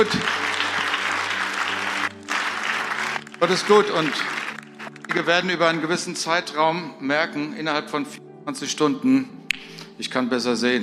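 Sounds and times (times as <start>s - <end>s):
speech: 0.0s - 0.4s, 3.4s - 4.4s, 5.2s - 10.8s
crowd clapping: 0.0s - 5.9s.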